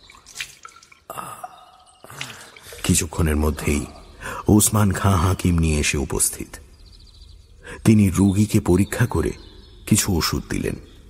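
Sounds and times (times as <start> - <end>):
water poured from a vessel trickling and dripping: 0.0 - 4.8
speech: 2.9 - 6.7, 7.9 - 11.0.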